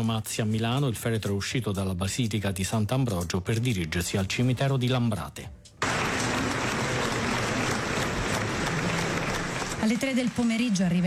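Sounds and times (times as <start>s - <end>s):
speech: 0.0s - 5.6s, 9.8s - 11.0s
crowd applauding outside a church: 5.8s - 11.0s.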